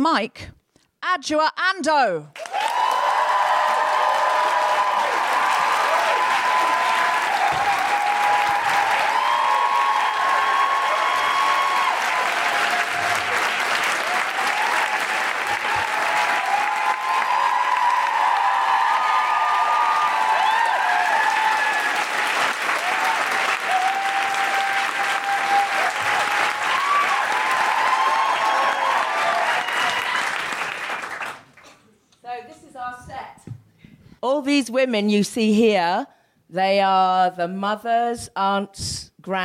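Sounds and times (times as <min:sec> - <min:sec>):
speech: 0:00.0 - 0:02.8, 0:34.6 - 0:39.4
audience applause at a live stage show: 0:02.4 - 0:31.6.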